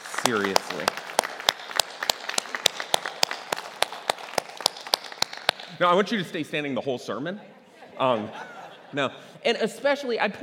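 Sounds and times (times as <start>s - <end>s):
audience applause: 0.0s - 5.7s
speech: 0.2s - 1.1s, 5.8s - 10.4s
laughter: 7.8s - 9.4s.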